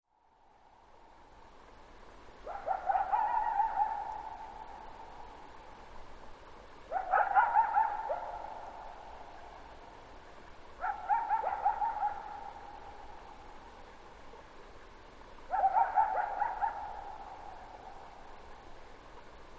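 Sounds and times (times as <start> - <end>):
coyote howling: 2.5 - 4.8, 6.9 - 8.6, 10.8 - 12.7, 15.5 - 17.9.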